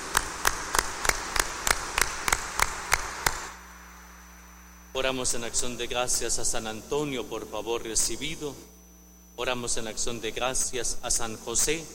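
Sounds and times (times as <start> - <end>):
audience applauding: 0.0 - 3.6
speech: 5.0 - 8.7, 9.4 - 11.9.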